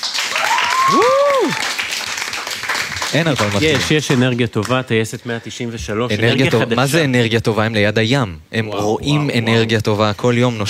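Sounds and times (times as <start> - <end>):
audience applause: 0.0 - 4.8
speech: 3.1 - 10.6.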